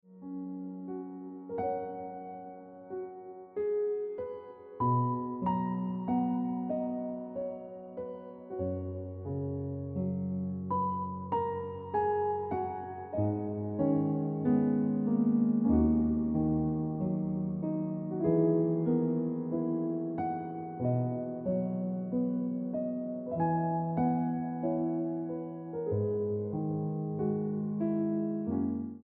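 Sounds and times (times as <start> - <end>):
piano music: 0.1 - 29.0.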